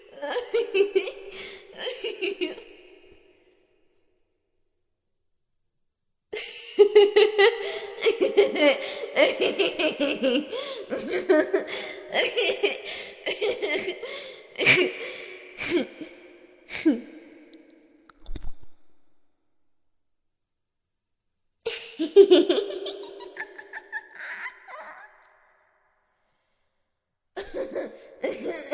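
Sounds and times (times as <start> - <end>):
crazy girl laughing manically: 0.1 - 2.7, 6.4 - 15.2, 21.7 - 25.4, 27.4 - 28.7.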